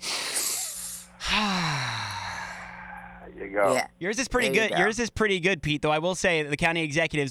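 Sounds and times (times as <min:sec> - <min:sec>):
people taking a deep breath together: 0:00.0 - 0:03.4
speech: 0:03.3 - 0:07.2.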